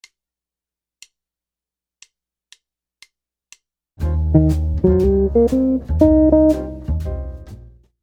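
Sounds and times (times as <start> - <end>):
musical lick: 4.3 - 7.2.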